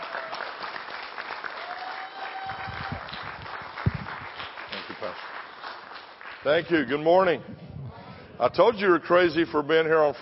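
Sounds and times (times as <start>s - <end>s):
church family conference audience applause welcoming a preacher: 0.0s - 6.6s
speech: 6.4s - 7.6s, 8.4s - 10.2s.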